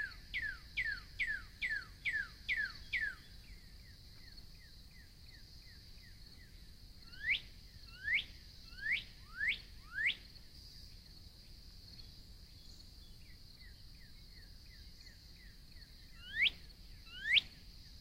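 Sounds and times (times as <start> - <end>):
Northern cardinal song: 0.0 - 3.2, 7.1 - 10.2, 16.2 - 17.6.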